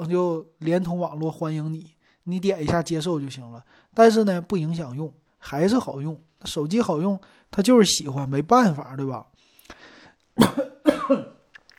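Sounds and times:
speech: 0.0s - 9.8s, 10.4s - 11.4s
person coughing after choking while talking: 10.4s - 11.4s.

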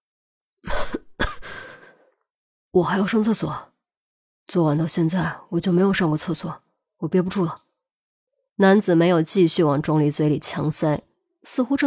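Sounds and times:
person coughing: 0.7s - 1.7s
speech: 2.8s - 3.7s, 4.5s - 7.6s, 8.6s - 11.8s.

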